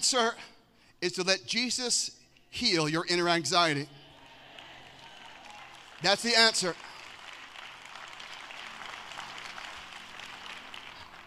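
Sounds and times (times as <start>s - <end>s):
speech: 0.1s - 4.0s, 6.0s - 6.9s
audience clapping: 4.2s - 11.2s.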